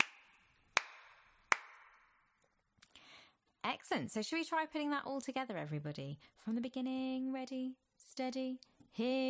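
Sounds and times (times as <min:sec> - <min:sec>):
hand clapping: 0:00.0 - 0:02.1
speech: 0:03.8 - 0:09.2.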